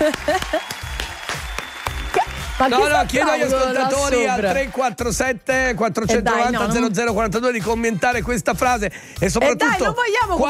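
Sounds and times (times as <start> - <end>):
people cheering and whooping: 0.0 - 4.2
applause: 0.0 - 5.0
speech: 2.6 - 10.4.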